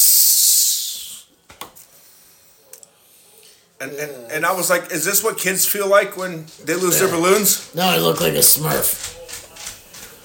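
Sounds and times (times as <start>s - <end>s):
voice imitating a beer can spraying: 0.0s - 1.3s
speech: 3.8s - 9.2s.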